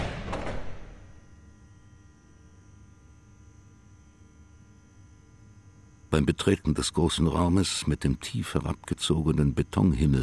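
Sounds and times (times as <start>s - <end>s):
heavy polished steel door of a concrete chamber swinging open: 0.0s - 1.2s
speech: 6.1s - 10.2s.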